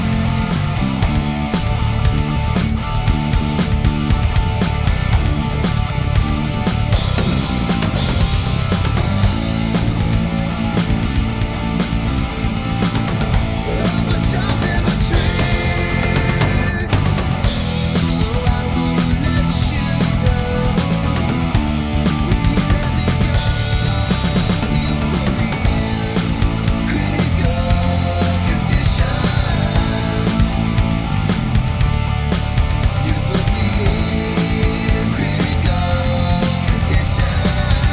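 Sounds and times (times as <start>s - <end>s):
karaoke singing: 0.0s - 37.9s.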